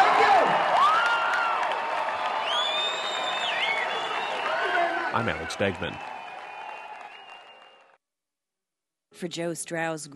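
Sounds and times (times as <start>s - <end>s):
crowd cheering and applauding: 0.0s - 8.0s
shrill whistles and whoops: 0.6s - 8.0s
speech: 5.2s - 6.1s, 9.2s - 10.1s.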